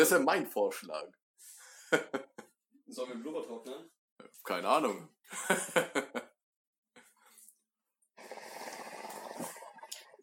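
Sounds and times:
speech: 0:00.0 - 0:06.3
laughter: 0:05.3 - 0:06.4
person slurping water: 0:08.2 - 0:10.2.

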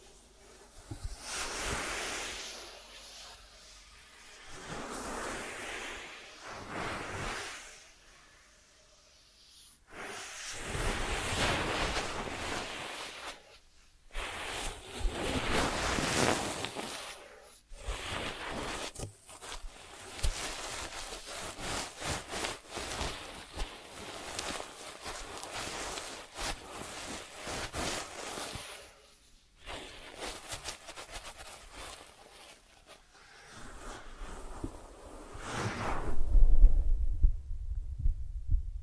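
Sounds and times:
ASMR ear treatment rustling and scratching strokes: 0:00.0 - 0:37.2
low rumble: 0:35.8 - 0:38.8.

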